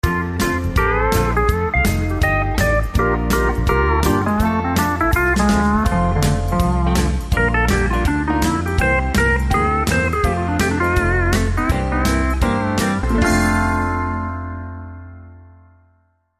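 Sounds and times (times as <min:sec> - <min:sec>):
country dance music: 0:00.0 - 0:14.9.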